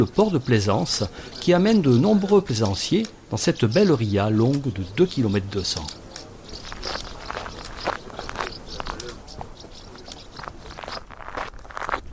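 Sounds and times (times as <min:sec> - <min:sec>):
speech: 0:00.0 - 0:06.0
footsteps on the coastal hiking trail out of Sauzon on Belle-Île: 0:05.8 - 0:12.1.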